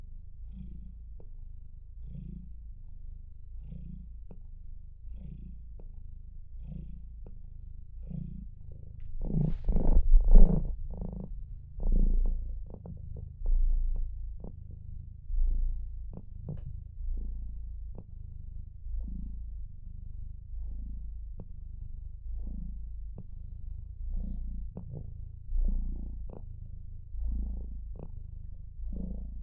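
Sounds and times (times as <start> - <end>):
cat purring: 2.0 - 29.4.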